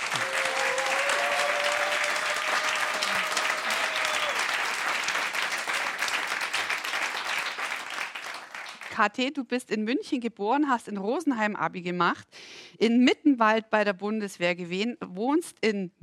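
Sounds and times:
live audience applauding: 0.0s - 9.0s
speech: 9.0s - 16.0s.

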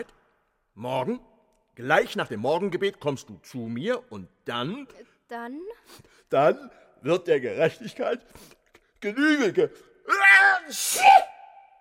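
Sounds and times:
speech: 0.0s - 0.2s, 0.8s - 11.3s
sneeze: 10.7s - 11.5s.

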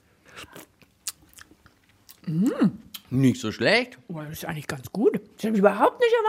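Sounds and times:
person eating hot runny green paste from a long spoon: 0.2s - 3.1s
speech: 2.3s - 6.2s.

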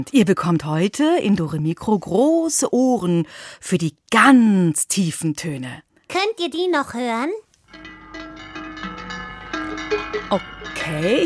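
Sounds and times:
speech: 0.0s - 7.4s, 10.3s - 11.2s
low cowbells: 7.7s - 11.2s.

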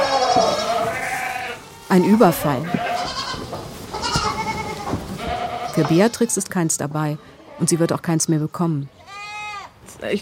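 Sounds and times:
goats and their kids bleating in a herd: 0.0s - 6.4s, 9.0s - 9.8s
rustling and movement of the herd: 0.0s - 6.9s
speech: 1.9s - 2.8s, 5.8s - 9.0s, 10.0s - 10.2s.

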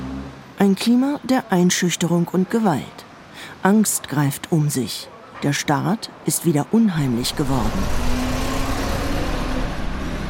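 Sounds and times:
road traffic roaring on a busy city avenue: 0.0s - 10.2s
speech: 0.6s - 8.2s
faint tonal engine drone: 7.0s - 10.2s.

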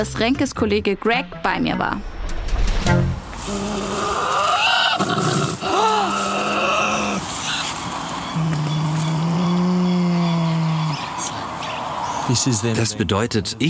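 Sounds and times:
speech: 0.0s - 2.1s, 2.8s - 4.2s, 12.3s - 13.6s
Tasmanian devil screaming: 3.4s - 11.4s.

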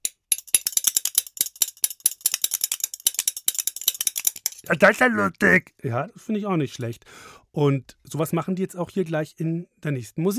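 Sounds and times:
spoons clacked back to back on thigh: 0.0s - 4.7s
speech: 4.6s - 10.3s.

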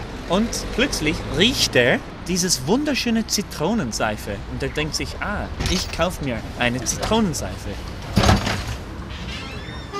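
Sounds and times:
speech: 0.3s - 7.9s
shop door opening: 8.1s - 9.9s.

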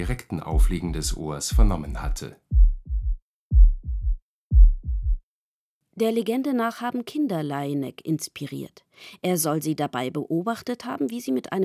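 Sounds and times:
speech: 0.0s - 2.7s, 6.0s - 11.6s
heartbeat heard through a stethoscope: 0.0s - 5.3s.

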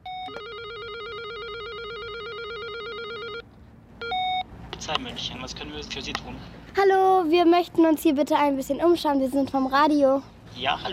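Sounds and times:
electronic doorbell with warbling two-tone trill: 0.0s - 3.4s
speech: 4.8s - 10.9s.

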